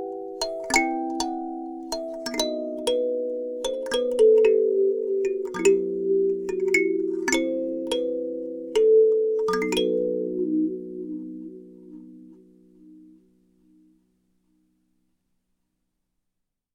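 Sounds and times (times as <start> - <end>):
alto kalimba: 0.0 - 13.0.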